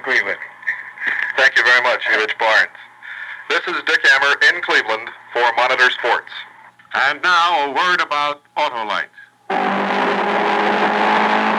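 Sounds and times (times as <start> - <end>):
speech: 0.0 - 0.5, 1.4 - 2.8, 3.5 - 9.7
Ford Mark IV race car engine roaring at high revs: 9.5 - 11.5.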